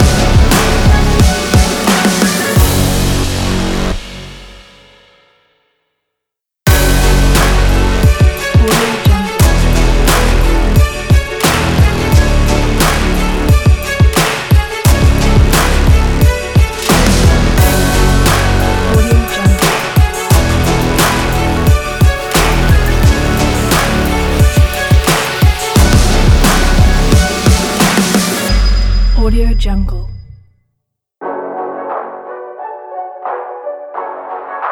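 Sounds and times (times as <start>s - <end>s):
epic sport trap dramatic workout music: 0.0s - 4.4s, 6.7s - 29.1s.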